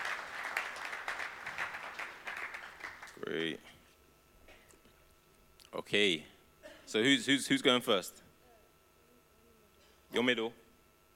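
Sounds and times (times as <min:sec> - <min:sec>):
audience applause: 0:00.0 - 0:03.2
speech: 0:03.2 - 0:03.8, 0:05.7 - 0:06.3, 0:06.9 - 0:08.2, 0:10.1 - 0:10.6.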